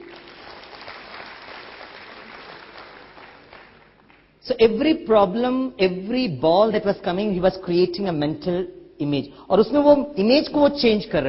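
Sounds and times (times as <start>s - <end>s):
audience clapping: 0.0s - 4.4s
speech: 4.4s - 11.2s.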